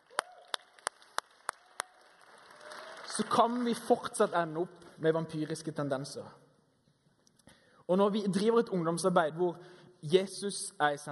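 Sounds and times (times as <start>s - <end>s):
hand claps: 0.0s - 3.8s
low hiss: 0.6s - 11.1s
speech: 3.1s - 6.4s, 7.9s - 11.1s.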